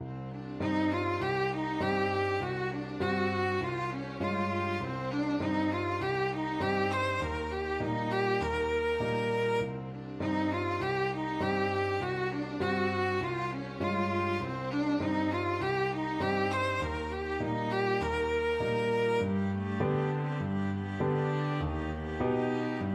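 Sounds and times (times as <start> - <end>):
piano quartet playing: 0.0 - 22.9.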